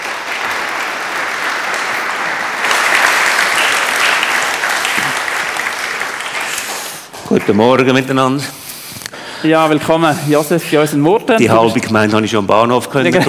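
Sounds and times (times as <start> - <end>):
crowd applause welcoming a guest on stage: 0.0 - 8.0
speech: 7.4 - 8.6, 9.4 - 13.2.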